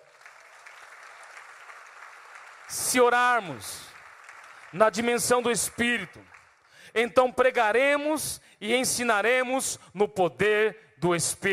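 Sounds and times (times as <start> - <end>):
crowd clapping: 0.0 - 7.8
speech: 2.7 - 3.9, 4.7 - 11.5.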